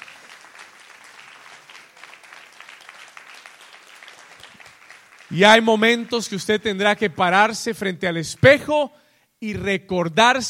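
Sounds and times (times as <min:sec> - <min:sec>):
crowd applauding: 0:00.0 - 0:06.7
speech: 0:05.3 - 0:10.4.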